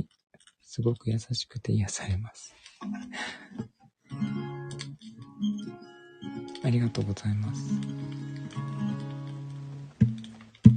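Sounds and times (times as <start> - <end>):
speech: 0.7 - 4.4, 6.7 - 8.1
laughter: 2.8 - 3.7
ringing guitar notes: 4.1 - 10.7.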